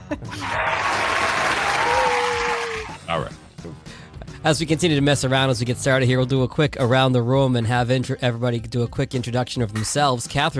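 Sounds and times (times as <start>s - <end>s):
speech: 0.1s - 0.6s, 4.4s - 10.5s
applause: 0.4s - 3.0s.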